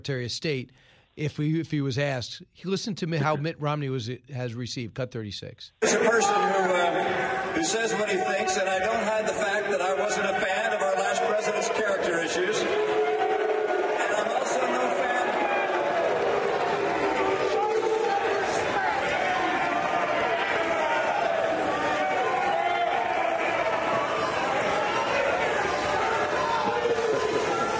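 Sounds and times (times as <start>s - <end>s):
speech: 0.0s - 10.8s
raucous crowd shouting down a speaker: 5.8s - 27.7s.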